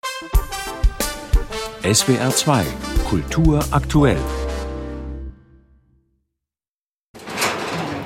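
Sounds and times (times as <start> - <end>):
speech: 1.8 - 4.4
musical tones: 1.8 - 5.9
conservator opening the storeroom door: 7.2 - 8.0.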